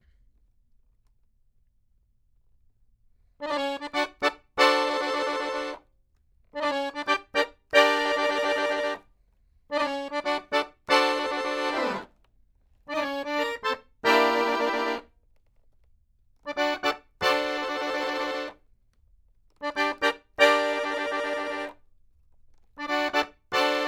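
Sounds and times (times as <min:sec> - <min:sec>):
accordion: 0:03.4 - 0:05.9, 0:06.6 - 0:09.1, 0:09.7 - 0:12.2, 0:12.9 - 0:15.1, 0:16.5 - 0:18.6, 0:19.6 - 0:21.8, 0:22.8 - 0:23.8.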